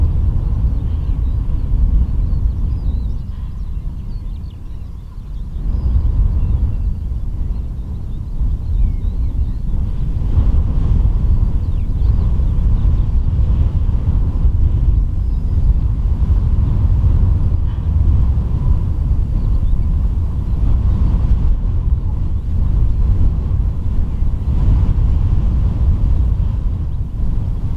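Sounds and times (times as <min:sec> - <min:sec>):
wind roaring around the lighthouse at Rubjerg Knude: 0:00.0 - 0:27.7.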